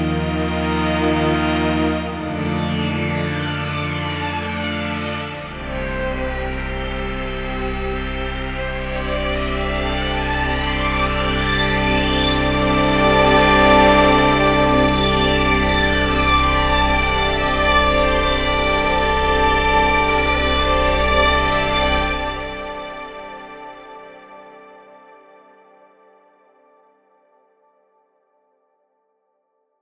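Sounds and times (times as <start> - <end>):
deep synth pads: 0.0 - 23.4.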